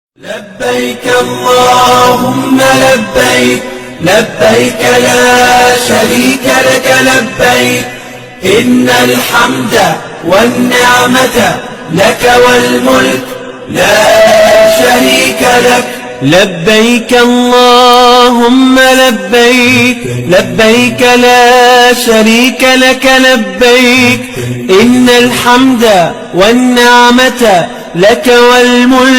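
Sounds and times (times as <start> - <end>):
pilgrims chanting: 0.2 - 29.1.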